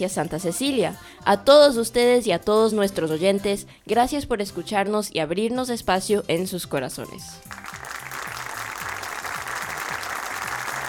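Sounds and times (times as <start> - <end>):
speech: 0.0 - 7.6
applause: 7.5 - 10.8.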